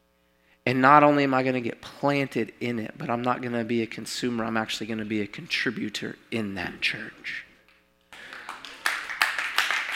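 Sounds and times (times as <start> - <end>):
speech: 0.7 - 7.5
church congregation clapping during a sermon: 8.1 - 9.9.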